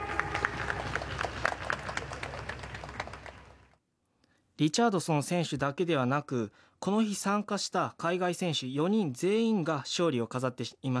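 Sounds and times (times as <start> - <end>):
audience applause welcoming a racer: 0.0 - 3.6
speech: 4.6 - 10.9.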